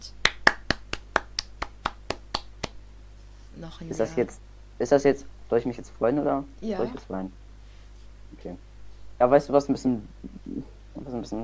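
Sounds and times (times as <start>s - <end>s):
hand claps applauding a birthday: 0.2s - 2.8s
speech: 3.6s - 7.4s, 8.3s - 11.4s.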